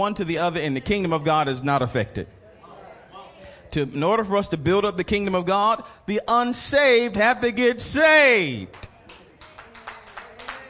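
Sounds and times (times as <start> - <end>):
speech: 0.0 - 2.4, 3.7 - 8.9
audience clapping: 8.7 - 10.6.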